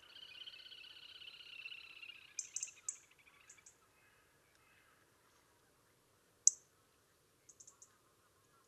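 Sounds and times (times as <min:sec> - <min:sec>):
European robin Erithacus rubecula uttering snapping ticks: 0:00.0 - 0:04.9, 0:06.4 - 0:06.7, 0:07.4 - 0:08.6.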